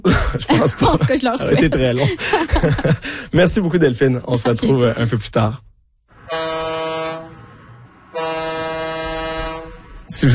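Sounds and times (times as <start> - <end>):
laughter: 0.0 - 3.3
speech: 0.0 - 5.7, 10.1 - 10.3
boat siren announcing the Fête du Lac des Nations contest: 6.1 - 10.1.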